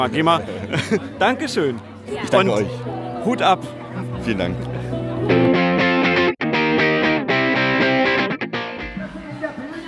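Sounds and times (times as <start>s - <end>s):
speech: 0.0s - 5.4s
laughter: 0.4s - 1.4s
live band playing music: 2.1s - 9.8s.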